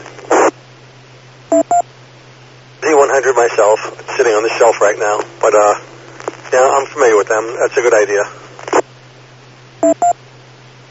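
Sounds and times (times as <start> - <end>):
radio tuner CW carrier beep: 1.5 - 1.9, 9.8 - 10.2
speech: 3.2 - 5.9, 6.5 - 8.4.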